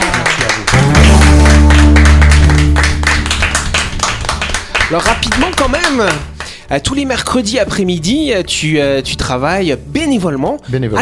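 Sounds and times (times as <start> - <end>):
audience applauding: 0.0 - 6.5
speech: 4.9 - 11.0.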